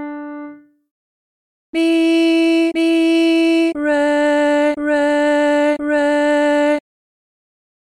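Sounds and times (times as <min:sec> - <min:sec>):
person singing medium solfa training exercise: 0:01.8 - 0:06.9.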